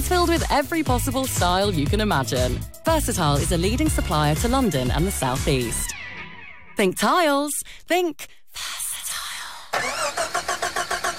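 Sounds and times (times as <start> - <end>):
speech: 0.1 - 6.0, 6.8 - 8.7
car engine starting in a car servicing garage radio advert: 9.7 - 11.1.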